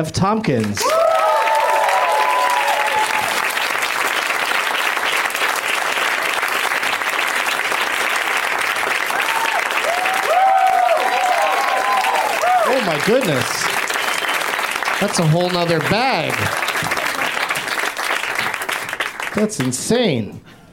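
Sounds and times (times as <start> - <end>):
speech: 0.0 - 1.4, 13.0 - 13.7, 15.0 - 17.0, 19.4 - 20.5
audience applause welcoming guests onto the stage: 0.6 - 19.8
audience whoops and cheers: 0.8 - 3.5, 9.1 - 13.0.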